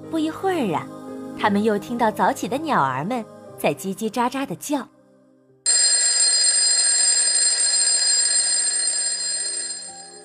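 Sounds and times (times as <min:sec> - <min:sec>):
speech: 0:00.1 - 0:05.0
alarm clock ringing: 0:05.7 - 0:10.2.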